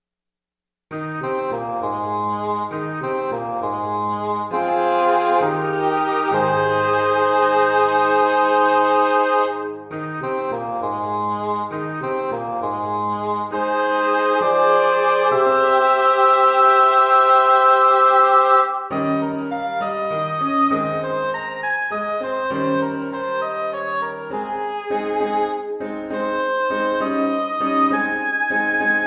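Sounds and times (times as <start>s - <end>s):
barcarolle in G on piano: 0.9s - 29.0s.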